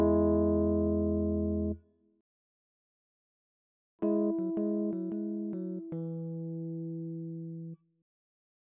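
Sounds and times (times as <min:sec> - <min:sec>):
Rhodes electric piano: 0:00.0 - 0:01.8, 0:04.0 - 0:07.7.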